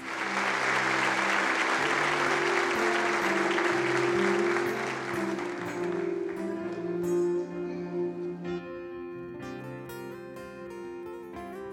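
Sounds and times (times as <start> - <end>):
audience applause: 0.0 - 8.5
sustained organ or keyboard chords: 0.0 - 11.5.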